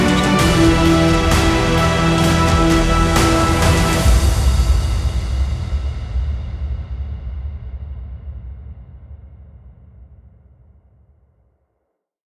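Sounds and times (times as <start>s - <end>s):
epic motivational music: 0.0s - 6.5s.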